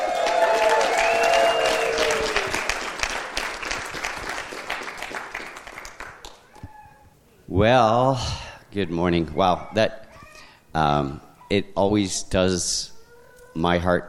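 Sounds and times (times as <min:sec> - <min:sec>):
church congregation applause welcoming a guest speaker: 0:00.0 - 0:06.4
speech: 0:07.6 - 0:10.0, 0:10.8 - 0:12.9, 0:13.6 - 0:14.0.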